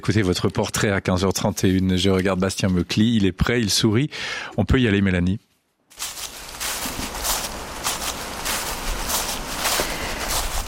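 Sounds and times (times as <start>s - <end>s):
speech: 0.0s - 6.2s
footsteps crunching dry dead leaves: 5.9s - 10.6s.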